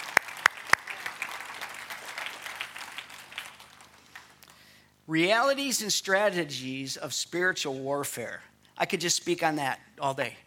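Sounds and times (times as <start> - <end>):
audience applause: 0.0 - 4.4
sharp loud claps: 0.0 - 4.6
speech: 5.1 - 10.4.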